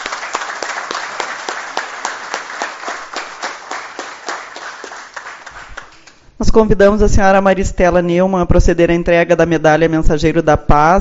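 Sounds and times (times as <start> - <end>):
audience applause: 0.0 - 6.2
speech: 6.5 - 10.9.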